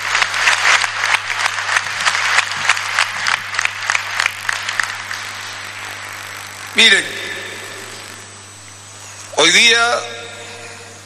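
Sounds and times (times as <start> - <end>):
crowd clapping: 0.0 - 5.8
low steady hum: 0.0 - 11.0
speech: 6.8 - 7.2, 9.5 - 10.2.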